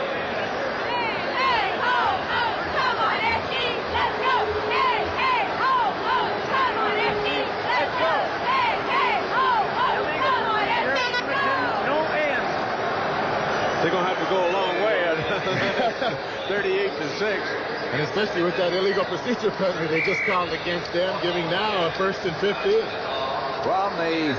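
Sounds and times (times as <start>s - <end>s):
crowd noise: 0.0s - 24.3s
Edmonton cheerleaders chanting a cheer: 0.8s - 12.4s
laughter: 14.7s - 16.8s
speech: 15.5s - 24.3s.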